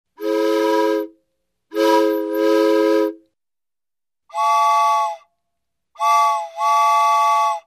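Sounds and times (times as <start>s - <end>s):
locomotive whistle: 0.2s - 1.1s, 1.7s - 3.2s, 4.3s - 5.3s, 6.0s - 7.6s.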